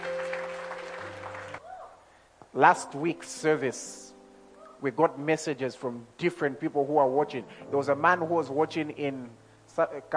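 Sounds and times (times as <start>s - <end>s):
audience clapping: 0.0s - 1.6s
speech: 2.6s - 4.0s, 4.8s - 10.1s.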